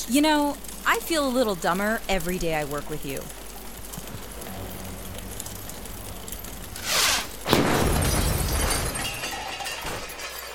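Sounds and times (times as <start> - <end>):
speech: 0.1 - 3.4
explosion: 6.8 - 9.5.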